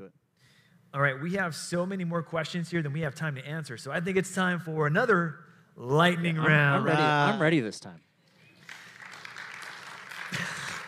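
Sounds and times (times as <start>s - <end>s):
speech: 0.9s - 8.1s
audience clapping: 8.3s - 10.8s.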